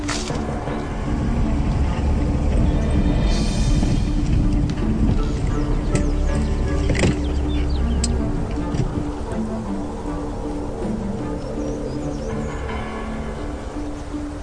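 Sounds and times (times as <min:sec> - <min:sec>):
car approaching: 0:00.0 - 0:14.4.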